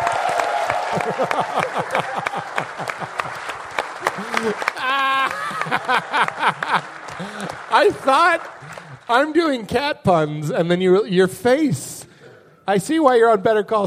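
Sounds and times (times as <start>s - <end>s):
audience applause at a comedy show: 0.0s - 9.4s
audience laughter: 1.0s - 7.7s
speech: 1.0s - 12.1s, 12.7s - 13.8s.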